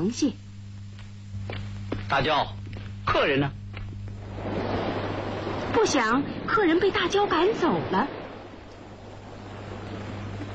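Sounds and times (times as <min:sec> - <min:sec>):
speech: 0:00.0 - 0:00.5, 0:01.5 - 0:03.6, 0:05.8 - 0:08.2
sea water surging against rocks at night: 0:04.2 - 0:10.5.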